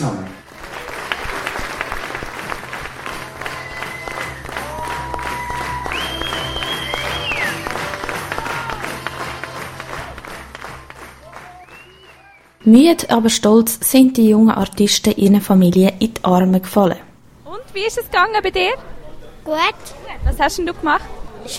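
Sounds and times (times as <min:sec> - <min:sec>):
speech: 0:00.0 - 0:00.4, 0:12.7 - 0:17.1, 0:17.8 - 0:21.5
audience applause: 0:00.0 - 0:12.6.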